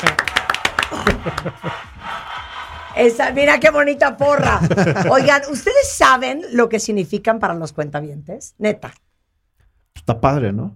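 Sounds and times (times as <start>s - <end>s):
audience applause for the doctors on a TV show: 0.0s - 6.0s
people talking and laughing: 0.9s - 2.6s, 4.0s - 6.2s
speech: 1.0s - 1.9s, 3.0s - 9.0s, 10.0s - 10.7s.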